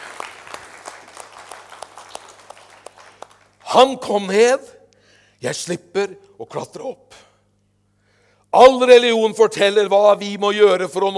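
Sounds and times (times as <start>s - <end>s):
applause: 0.0s - 3.6s
speech: 3.7s - 4.8s, 5.4s - 7.2s, 8.5s - 11.1s.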